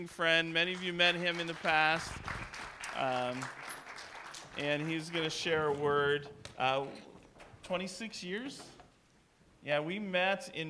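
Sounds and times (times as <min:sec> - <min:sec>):
speech: 0:00.0 - 0:02.4, 0:03.0 - 0:03.6, 0:04.6 - 0:07.1, 0:07.7 - 0:08.8, 0:09.6 - 0:10.6
audience clapping: 0:00.4 - 0:06.6.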